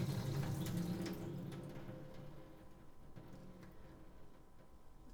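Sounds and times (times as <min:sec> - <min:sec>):
urinating into a sink: 0:00.0 - 0:03.9.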